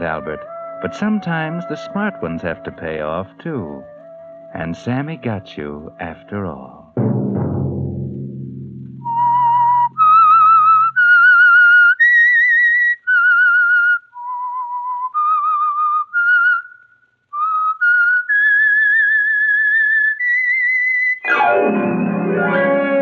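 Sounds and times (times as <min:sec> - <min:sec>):
speech: 0:00.0 - 0:03.9, 0:04.5 - 0:07.2
whistled theme melody: 0:00.0 - 0:06.6, 0:09.0 - 0:23.0
low tone: 0:07.5 - 0:11.3.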